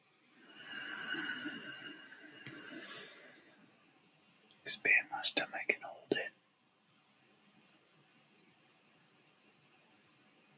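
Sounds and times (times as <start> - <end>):
deep inhale: 0.4 - 3.7
speech: 4.7 - 6.4.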